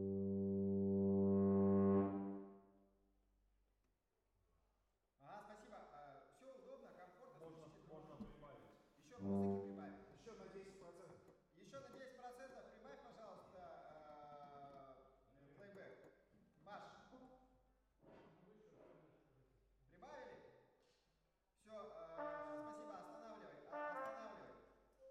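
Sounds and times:
horns: 0:00.0 - 0:02.6, 0:09.2 - 0:10.1, 0:22.1 - 0:24.6.

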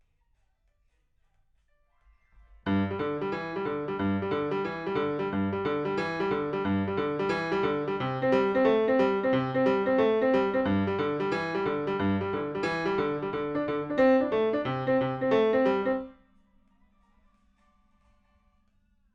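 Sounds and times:
rock and roll piano: 0:02.7 - 0:16.1.

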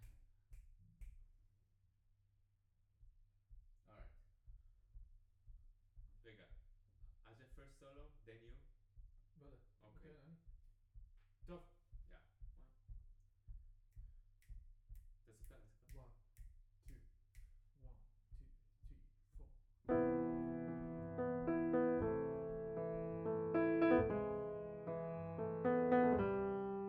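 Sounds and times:
piano note B: 0:19.9 - 0:26.8.

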